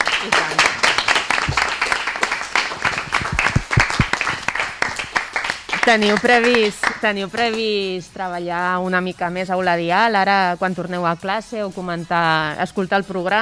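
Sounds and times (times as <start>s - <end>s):
audience applause: 0.0s - 7.0s
speech: 5.9s - 13.4s.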